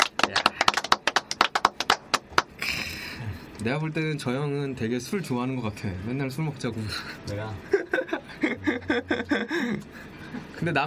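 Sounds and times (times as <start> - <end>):
crowd applause: 0.0 - 2.5
speech: 3.6 - 7.8, 8.7 - 10.8
laughter: 7.6 - 10.1.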